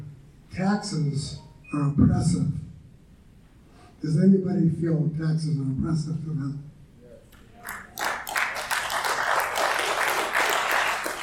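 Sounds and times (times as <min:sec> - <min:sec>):
speech: 0:00.6 - 0:02.7, 0:04.0 - 0:06.7
crowd applause: 0:07.6 - 0:11.2.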